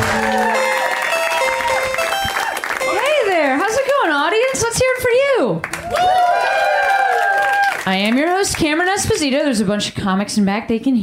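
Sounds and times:
comedy show audience applause: 0.0s - 4.0s, 5.6s - 8.8s
music playing: 0.0s - 4.4s
speech: 8.4s - 11.0s.

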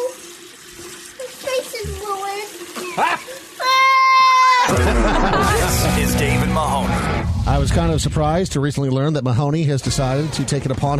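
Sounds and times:
water gushing loudly from a tap: 0.0s - 4.7s
little girl speaking while washing off face paint: 1.2s - 4.6s
laughter: 2.9s - 3.5s, 4.6s - 6.9s
speech: 7.6s - 10.9s.

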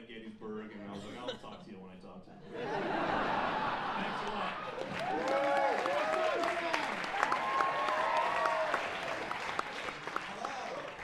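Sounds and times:
speech: 0.4s - 3.1s
laughter: 2.4s - 5.4s
audience applause: 3.6s - 11.0s
people cheering and whooping: 4.7s - 11.0s.

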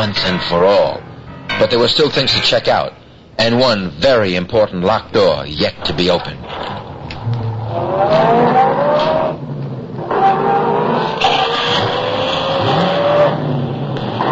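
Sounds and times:
speech: 0.0s - 1.0s, 1.6s - 6.7s
car engine accelerating in a chase: 6.4s - 14.3s.

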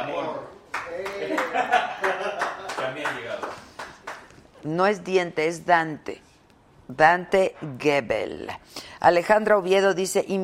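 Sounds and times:
handclaps: 0.7s - 4.4s
laughter: 1.2s - 2.6s
speech: 4.6s - 6.2s, 6.9s - 10.4s.

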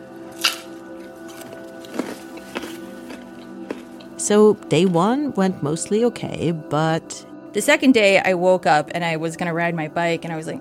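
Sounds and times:
chewing baby carrots: 0.3s - 4.2s
speech: 4.2s - 10.5s.

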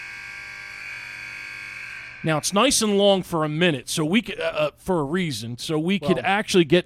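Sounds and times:
buzzer from St. Pete's College: 0.0s - 2.4s
speech: 2.2s - 6.8s.

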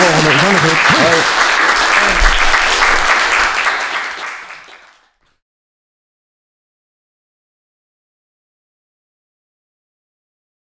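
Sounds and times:
applause: 0.0s - 5.4s.

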